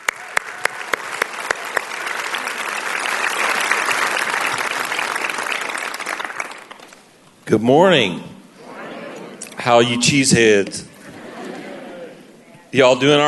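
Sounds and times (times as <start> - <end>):
church congregation clapping to welcome a visiting reverend: 0.0 - 7.2
speech: 7.5 - 8.3, 9.6 - 10.9, 12.7 - 13.2
laughter: 8.6 - 12.5.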